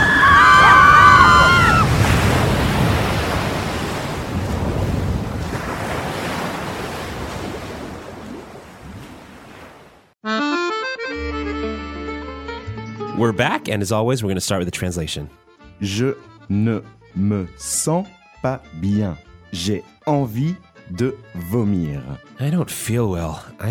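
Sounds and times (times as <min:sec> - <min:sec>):
ocean waves washing around a boat on a choppy sea: 0:00.0 - 0:10.2
speech: 0:13.3 - 0:23.6.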